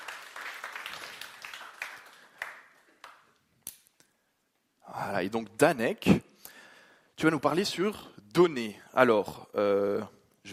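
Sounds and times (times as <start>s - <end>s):
audience applause: 0.0s - 3.2s
speech: 5.1s - 6.3s, 7.2s - 10.5s.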